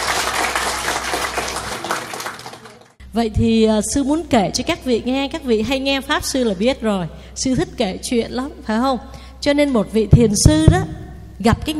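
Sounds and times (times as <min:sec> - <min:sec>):
audience applause: 0:00.0 - 0:03.0
speech: 0:03.1 - 0:11.7.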